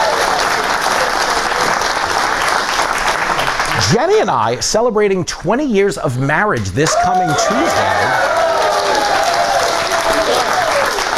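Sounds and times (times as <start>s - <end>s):
audience applause: 0.0s - 4.5s, 6.8s - 11.1s
speech: 3.9s - 8.2s.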